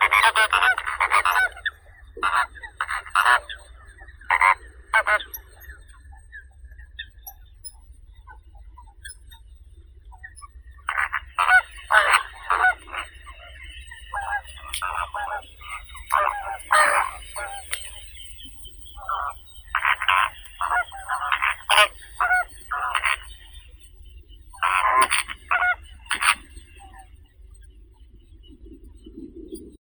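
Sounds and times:
greater flamingo Phoenicopterus roseus calling: 0:00.0 - 0:05.8, 0:10.9 - 0:23.8, 0:24.5 - 0:27.0.

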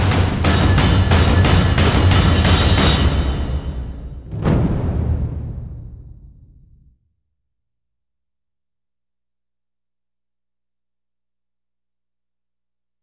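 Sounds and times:
percussion: 0:00.0 - 0:06.9.

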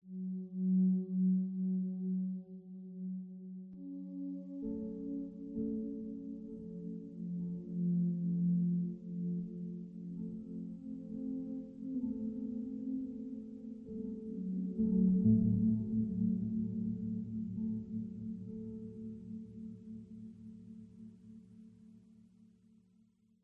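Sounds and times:
ambient music: 0:00.0 - 0:22.0.

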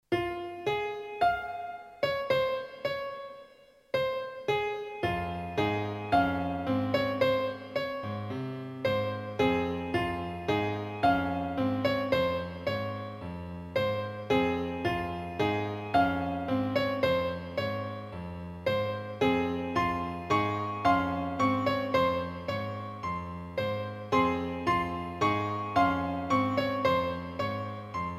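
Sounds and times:
piano: 0:00.0 - 0:28.1.

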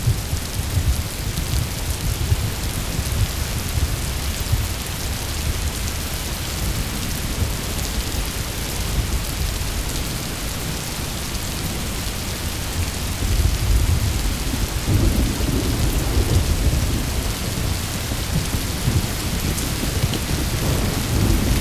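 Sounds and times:
rain: 0:00.0 - 0:21.5
thunder rolling: 0:13.3 - 0:21.5.

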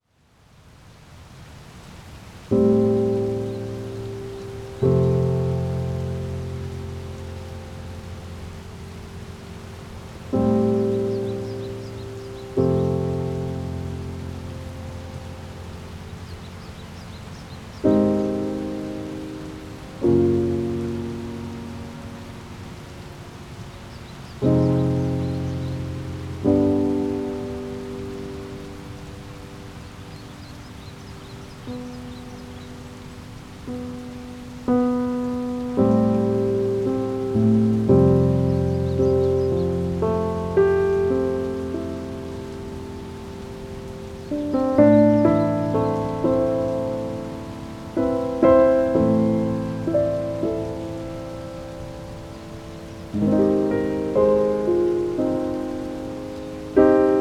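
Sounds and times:
jazzy piano music: 0:02.5 - 0:57.1.

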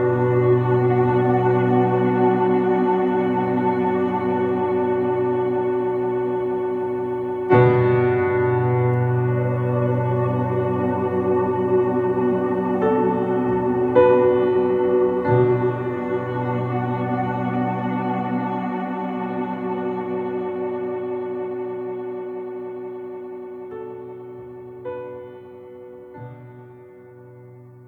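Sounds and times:
ambience: 0:00.0 - 0:24.7
piano: 0:00.0 - 0:27.8.

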